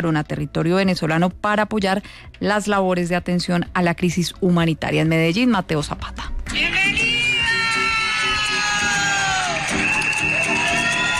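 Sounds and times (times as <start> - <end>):
speech: 0.0 - 7.0
crowd cheering and applauding a welcome: 6.5 - 11.1.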